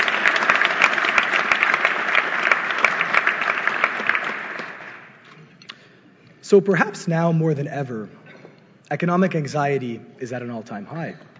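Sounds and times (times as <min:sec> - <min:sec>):
crowd applauding: 0:00.0 - 0:05.2
speech: 0:06.5 - 0:08.2, 0:08.9 - 0:11.3.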